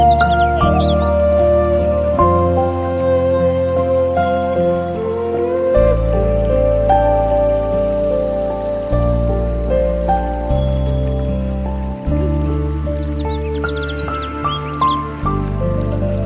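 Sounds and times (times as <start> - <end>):
birds: 0.0 - 2.0, 11.1 - 16.2
Japanese music: 0.0 - 16.2
stream flowing: 0.0 - 16.2.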